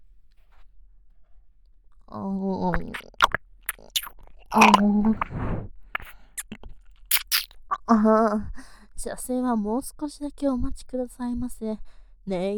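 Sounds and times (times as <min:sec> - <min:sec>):
speech: 0:02.1 - 0:03.1, 0:04.5 - 0:05.7, 0:07.9 - 0:12.5
soft vocal sounds: 0:02.7 - 0:08.0
ASMR ear massage scraping and rubbing inside the ear: 0:02.8 - 0:07.5.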